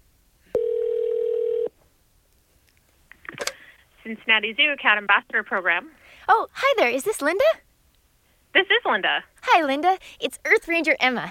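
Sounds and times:
telephone call connecting and ringing: 0:00.6 - 0:01.7
speech: 0:04.1 - 0:07.6, 0:08.5 - 0:11.2.

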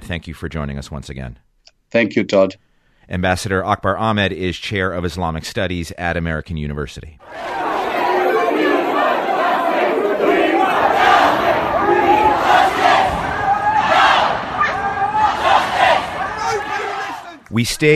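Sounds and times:
speech: 0:00.1 - 0:07.6, 0:17.5 - 0:17.9
people crying for justice: 0:07.2 - 0:17.4
furious protests near the charred remains of the Grenfell Tower: 0:07.2 - 0:17.6.

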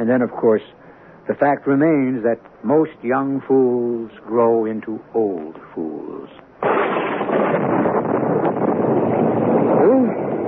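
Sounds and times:
speech: 0:00.0 - 0:06.8
stormy wind roaring: 0:06.6 - 0:10.4.

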